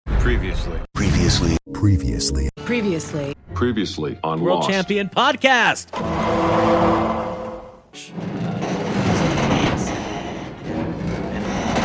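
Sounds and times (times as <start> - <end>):
speech: 0.2 - 7.2, 7.9 - 8.4
loud metal creaking: 5.9 - 11.8.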